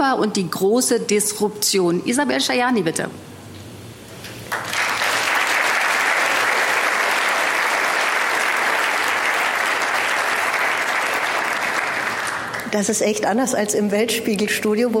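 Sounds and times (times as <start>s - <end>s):
speech: 0.0s - 3.4s, 12.7s - 14.9s
audience applauding: 4.4s - 12.8s.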